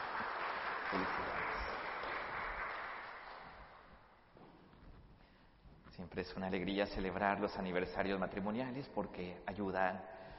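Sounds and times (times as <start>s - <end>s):
audience applause: 0.0s - 4.0s
speech: 6.0s - 10.3s.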